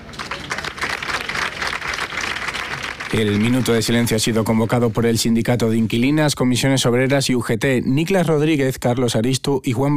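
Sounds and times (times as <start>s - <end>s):
crowd applauding at a gathering outside a hospital: 0.0s - 5.2s
speech: 3.1s - 9.9s.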